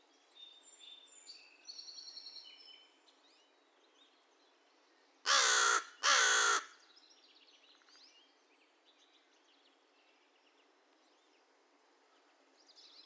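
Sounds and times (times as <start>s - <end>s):
American crow uttering raspy caws: 5.3s - 6.8s.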